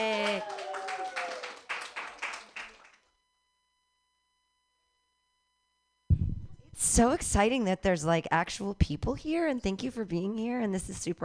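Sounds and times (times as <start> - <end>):
audience clapping: 0.0 - 3.1
speech: 6.8 - 11.2.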